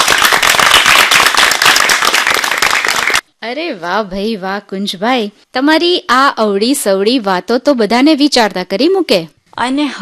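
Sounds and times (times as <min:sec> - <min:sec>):
audience clapping: 0:00.0 - 0:03.2
speech: 0:03.4 - 0:10.0.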